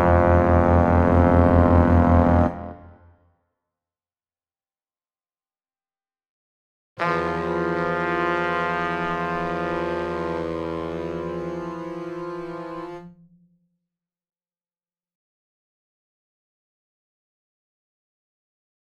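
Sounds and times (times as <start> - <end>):
horn: 0.0 - 3.0, 7.0 - 13.2
bass: 0.0 - 3.1, 7.0 - 13.2.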